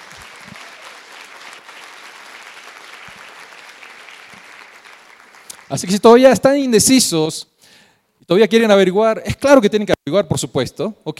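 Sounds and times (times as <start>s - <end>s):
audience applause: 0.0s - 5.8s
speech: 5.7s - 7.5s, 8.3s - 11.1s.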